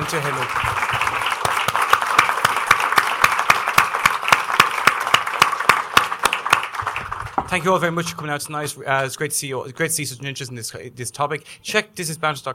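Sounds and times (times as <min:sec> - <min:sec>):
audience applause: 0:00.0 - 0:07.7
speech: 0:00.1 - 0:01.4, 0:07.5 - 0:12.5.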